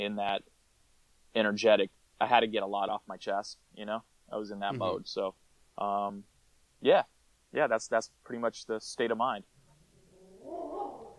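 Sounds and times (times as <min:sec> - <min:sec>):
speech: 0:00.0 - 0:00.6, 0:01.3 - 0:09.5
dog whining or howling: 0:10.1 - 0:11.1.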